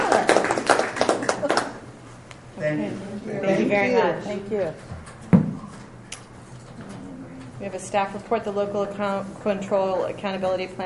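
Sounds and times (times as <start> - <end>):
audience applause: 0.0 - 1.8
speech: 3.7 - 4.9, 7.6 - 10.8.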